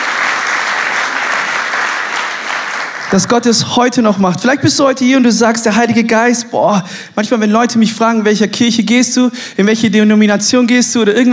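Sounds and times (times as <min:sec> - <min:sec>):
congregation applauding during a German-language church service: 0:00.0 - 0:03.5
speech: 0:03.1 - 0:11.3.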